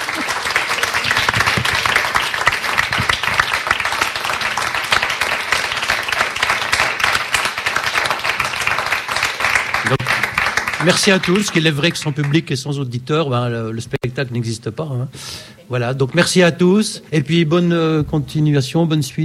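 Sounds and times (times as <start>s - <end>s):
audience applause: 0.0s - 12.5s
speech: 10.8s - 19.2s.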